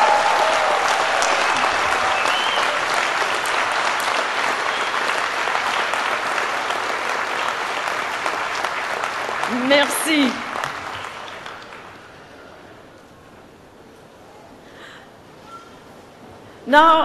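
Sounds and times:
graduates applauding their supporters: 0.0s - 12.8s
speech: 9.7s - 10.4s, 16.7s - 17.0s.

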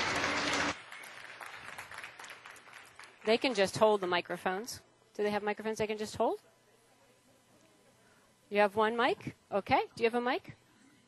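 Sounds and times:
audience applause: 0.0s - 3.6s
speech: 3.3s - 6.5s, 8.5s - 10.6s.

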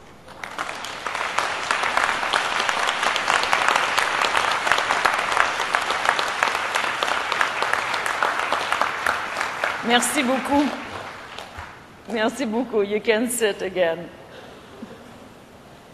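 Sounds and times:
large audience applause: 0.0s - 12.0s
speech: 9.9s - 10.8s, 12.1s - 14.2s.

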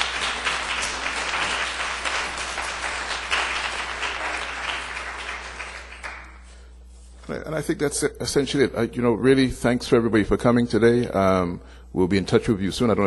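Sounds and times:
audience applause: 0.0s - 6.4s
speech: 7.3s - 13.0s.

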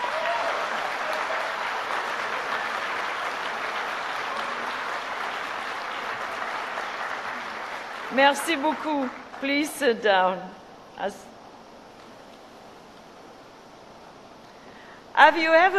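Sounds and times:
audience applause at graduation ceremony: 0.0s - 9.5s
speech: 8.1s - 11.3s, 15.2s - 15.7s.

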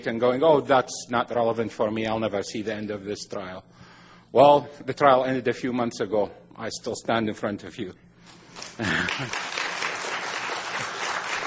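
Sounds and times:
speech: 0.0s - 9.5s
audience applause: 8.6s - 11.4s.

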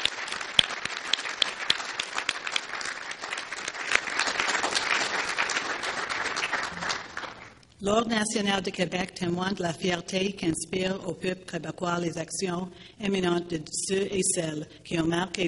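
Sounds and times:
audience applause: 0.0s - 7.6s
speech: 7.8s - 15.4s.

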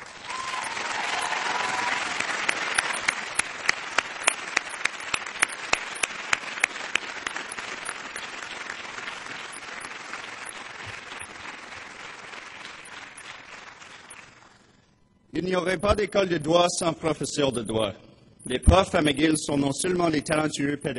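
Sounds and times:
round of applause from graduates: 0.0s - 14.7s
speech: 15.4s - 20.9s.

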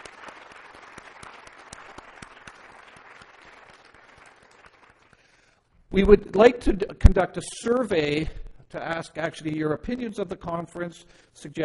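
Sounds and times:
audience applause: 0.0s - 5.5s
speech: 5.9s - 11.6s.

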